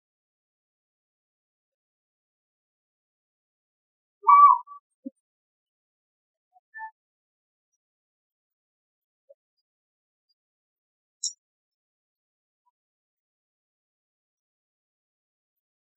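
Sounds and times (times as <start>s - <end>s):
Asian barred owlet Glaucidium cuculoides calling: 4.2s - 4.8s.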